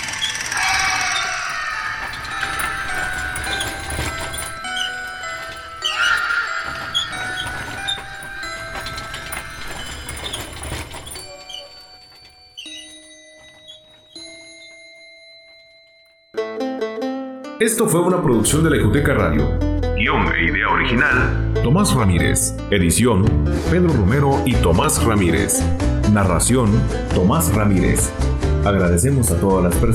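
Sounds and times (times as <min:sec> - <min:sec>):
horse whinnying as a horse-drawn cart passes at night: 0:00.0 - 0:11.9
clattering horse-drawn cart passing at night: 0:00.0 - 0:15.2
speech: 0:17.6 - 0:29.9.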